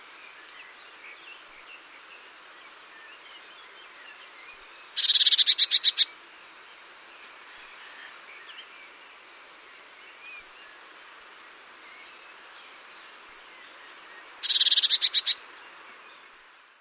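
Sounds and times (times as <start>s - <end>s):
faint bird chirps: 0.3s - 6.2s, 9.7s - 16.8s
great tit churring chatter: 14.2s - 15.4s.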